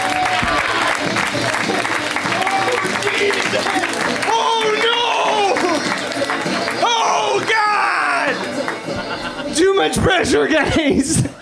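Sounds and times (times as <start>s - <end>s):
audience applause: 0.0s - 7.6s
laughter: 2.4s - 4.1s, 8.4s - 11.3s
speech: 9.8s - 11.3s.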